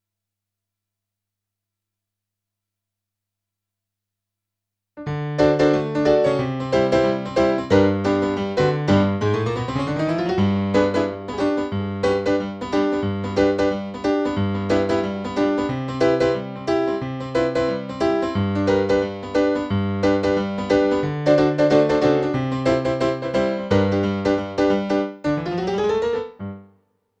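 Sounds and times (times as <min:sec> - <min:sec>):
rock and roll piano: 0:05.0 - 0:26.8.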